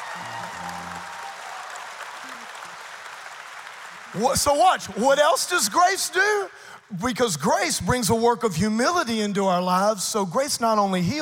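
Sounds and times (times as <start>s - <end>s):
audience clapping: 0.0s - 6.2s
speech: 4.1s - 11.2s.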